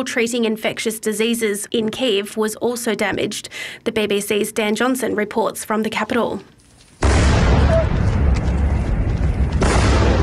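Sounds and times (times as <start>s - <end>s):
speech: 0.0s - 6.6s
explosions during a Russian night attack on Kyiv: 7.0s - 10.2s.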